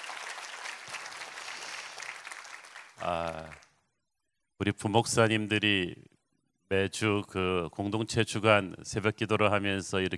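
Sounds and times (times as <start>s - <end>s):
audience applause: 0.0s - 3.7s
speech: 3.0s - 3.6s, 4.6s - 6.1s, 6.7s - 10.1s.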